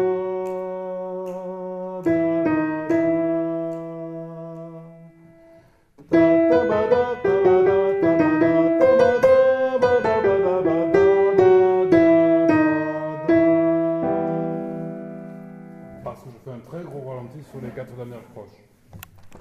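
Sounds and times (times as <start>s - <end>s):
sopranos singing: 0.0s - 5.5s, 6.1s - 15.0s.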